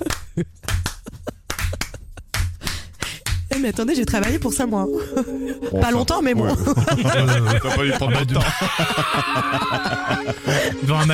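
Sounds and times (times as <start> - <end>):
speech: 0.0 - 0.8, 3.6 - 11.1
small group clapping: 0.0 - 4.4
laughter: 5.6 - 11.1.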